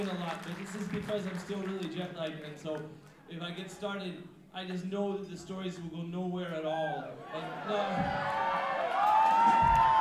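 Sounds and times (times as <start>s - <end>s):
speech: 0.0s - 8.8s
audience cheering and whooping: 7.2s - 9.9s.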